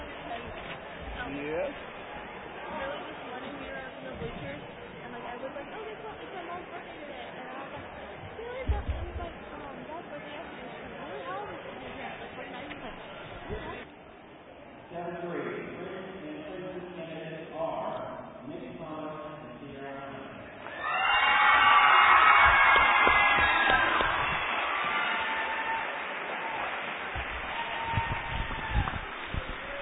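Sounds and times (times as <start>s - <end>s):
low crowd murmur: 0.0s - 14.9s, 20.4s - 29.8s
crowd cheering and shouting at homecoming coronation: 20.6s - 29.8s.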